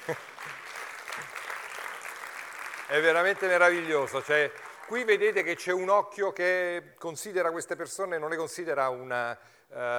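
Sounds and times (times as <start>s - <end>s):
audience applause at a jazz lecture: 0.0s - 5.7s
speech: 0.1s - 0.3s, 2.9s - 9.9s.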